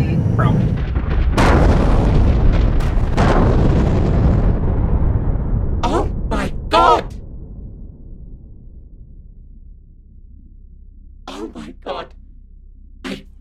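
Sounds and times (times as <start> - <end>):
spaceship explosion booms and crackling after takeoff: 0.2 - 9.5.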